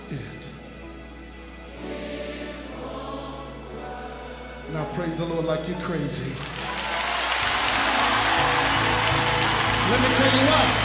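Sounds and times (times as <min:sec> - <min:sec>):
speech: 0:04.7 - 0:06.7, 0:09.9 - 0:10.8
audience clapping hands: 0:06.3 - 0:10.8.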